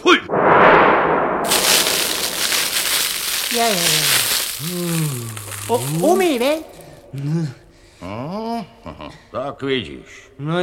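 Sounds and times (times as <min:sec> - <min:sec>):
fire flaring up under a cauldron: 0:00.3 - 0:07.2
speech: 0:03.7 - 0:10.6.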